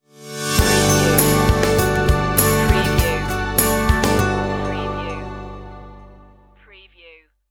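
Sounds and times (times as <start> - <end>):
musical stinger: 0.3 - 6.5.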